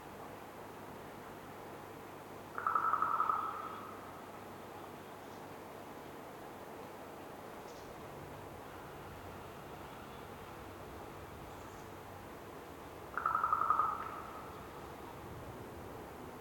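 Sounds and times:
raven croaking in a winter forest in North Laurentian Woods Canada: 0:02.5 - 0:04.1, 0:13.1 - 0:15.0.

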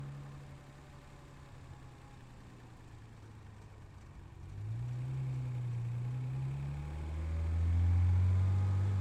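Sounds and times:
2012 Nissan GT-R R35 engine during onboard drive on ramps: 0:04.5 - 0:08.9.

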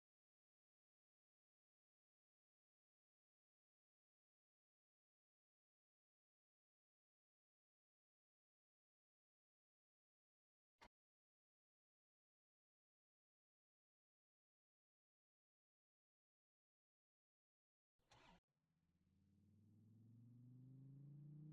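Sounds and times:
2014 Dodge Viper GTS V10 race engine driving: 0:19.3 - 0:21.5.

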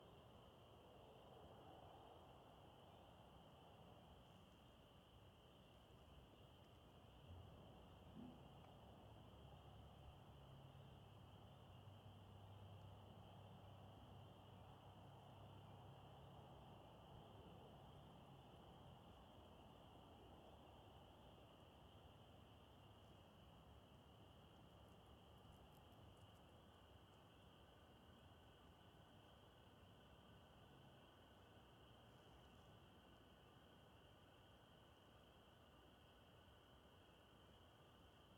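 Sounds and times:
crickets chirping in suburbia at dusk: 0:00.0 - 0:38.3.

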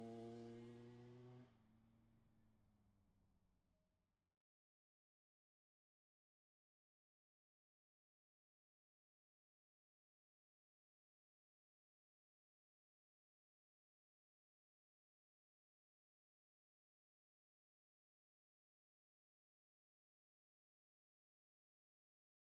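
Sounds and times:
TM 125 motorcycle passing by outside: 0:00.0 - 0:01.7.

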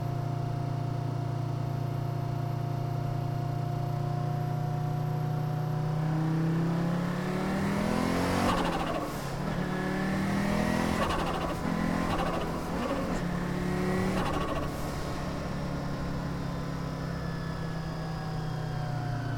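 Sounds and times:
1983 Audi Ur-Quattro engine while driving: 0:00.0 - 0:19.3
1983 Audi Ur-Quattro gearshifts: 0:10.5 - 0:14.8.

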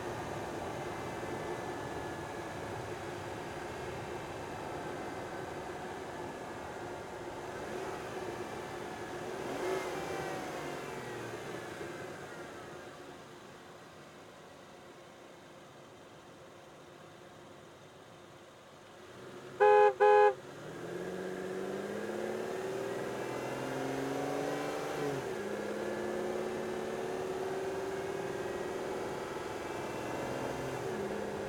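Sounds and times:
2005 Aston Martin DB9 engine onboard: 0:00.0 - 0:17.0, 0:17.8 - 0:31.4
2005 Aston Martin DB9 horn: 0:19.6 - 0:20.4.

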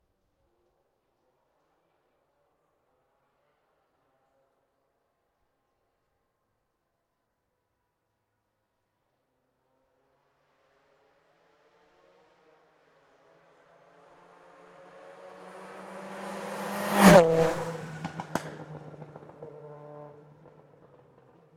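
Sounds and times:
Citroen Xsara WRC rally car passing fast: 0:11.6 - 0:21.5.

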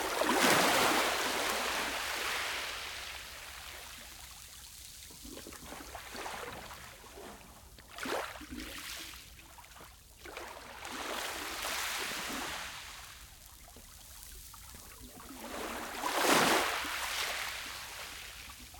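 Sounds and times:
gentle waves on a small beach with echo: 0:00.0 - 0:04.1, 0:10.8 - 0:13.2, 0:15.3 - 0:18.7.

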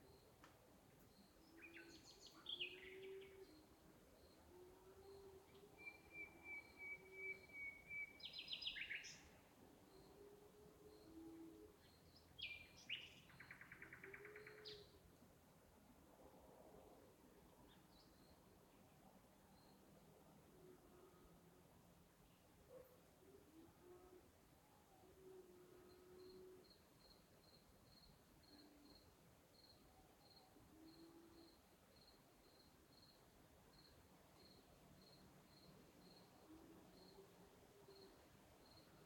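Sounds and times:
cricket: 0:00.0 - 0:02.0, 0:03.0 - 0:07.5, 0:09.8 - 0:12.1, 0:19.4 - 0:20.1, 0:25.1 - 0:39.0
night birds in the countryside: 0:00.0 - 0:39.0.

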